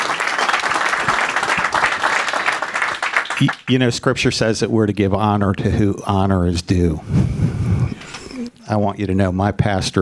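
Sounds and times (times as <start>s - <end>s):
church audience applauding to welcome a pastor: 0.0s - 3.6s
speech: 3.4s - 7.5s, 8.7s - 9.9s.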